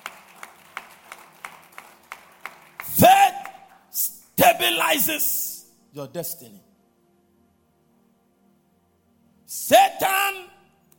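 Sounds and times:
audience clapping hands: 0.0 - 4.9
speech: 4.6 - 5.4, 6.0 - 6.7.

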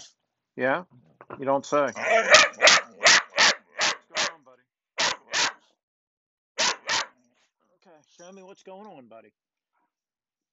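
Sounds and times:
speech: 0.6 - 2.8, 8.0 - 9.5
dog barking: 1.9 - 4.4, 5.0 - 5.6, 6.6 - 7.1.

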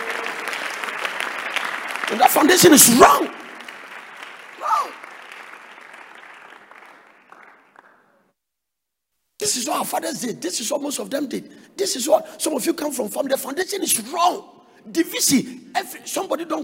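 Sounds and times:
audience clapping hands: 0.0 - 8.3
speech: 2.1 - 3.4, 9.5 - 16.6.

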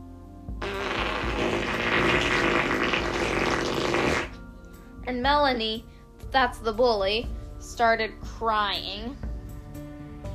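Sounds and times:
long loud raspy fart: 0.6 - 4.4
speech: 5.2 - 9.2.

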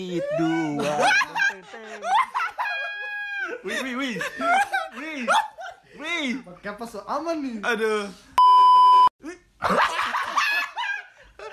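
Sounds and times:
speech: 0.0 - 2.1, 3.6 - 8.3
excited voices: 0.0 - 6.4
laughter: 0.8 - 5.8, 9.6 - 11.5
high-pitched censor bleep: 8.4 - 9.1.

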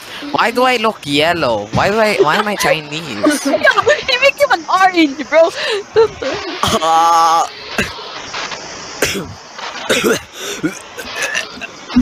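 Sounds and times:
speech: 0.2 - 8.0, 9.0 - 10.8
laughter: 1.7 - 4.5, 5.3 - 7.1, 9.9 - 12.0
choking coughs and gagging: 9.0 - 12.0
raspy hacks and gasps: 10.1 - 11.4.

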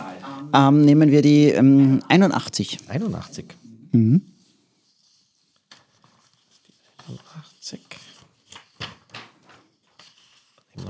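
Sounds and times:
speech: 0.5 - 4.3, 7.1 - 8.1
pages turning: 4.8 - 10.8.

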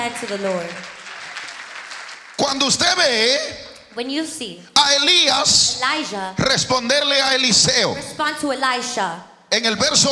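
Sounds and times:
speech: 0.0 - 1.0, 2.4 - 10.0
audience applauding loudly: 0.0 - 3.5.

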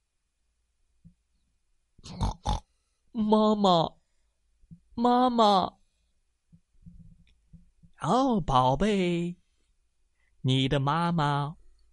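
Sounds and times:
speech: 2.0 - 2.5, 3.2 - 4.0, 5.0 - 5.8, 8.0 - 9.4, 10.4 - 11.6
pig grunting: 2.0 - 2.7.

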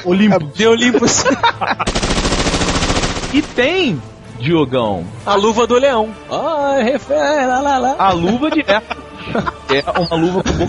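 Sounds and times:
speech: 0.0 - 2.1, 3.3 - 10.6
laughter: 0.7 - 2.0, 8.1 - 10.6
machine gun fire: 1.9 - 4.1.

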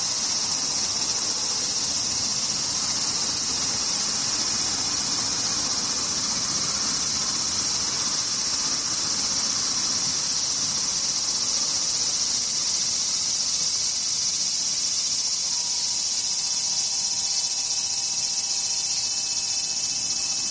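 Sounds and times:
cicadas droning: 0.0 - 20.4.

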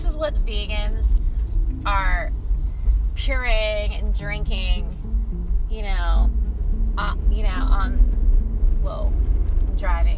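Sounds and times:
car engine and road rumble driving past Rustic Canyon: 0.0 - 10.1
speech: 0.2 - 2.4, 3.2 - 5.1, 5.7 - 6.4, 7.0 - 8.2, 8.8 - 10.1.

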